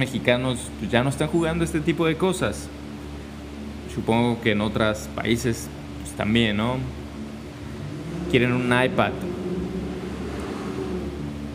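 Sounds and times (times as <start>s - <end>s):
speech: 0.0s - 2.8s, 4.0s - 7.0s, 8.3s - 9.4s
electric fans whirring: 0.0s - 11.5s
passing car engines: 7.2s - 11.5s.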